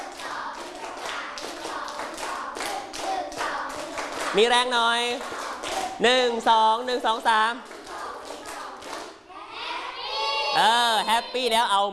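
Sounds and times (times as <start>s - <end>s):
students clapping hands in a rhythmic set: 0.0s - 9.3s
speech: 4.3s - 7.7s, 10.6s - 11.9s.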